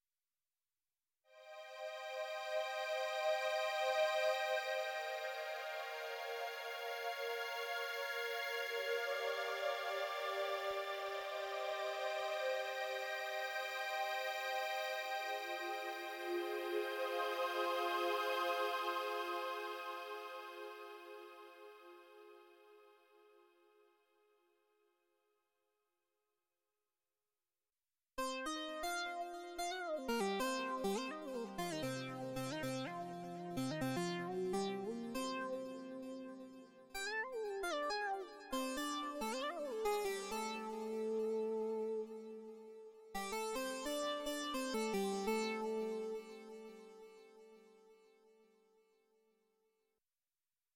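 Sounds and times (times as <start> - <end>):
Sunrizer synthesizer on iPad: 1.4 - 23.5, 28.2 - 47.7.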